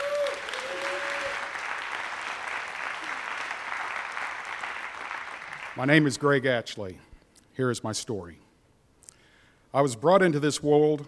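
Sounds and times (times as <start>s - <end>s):
audience applause welcoming a speaker at a church gathering: 0.0s - 5.8s
speech: 5.8s - 8.4s, 9.7s - 11.0s.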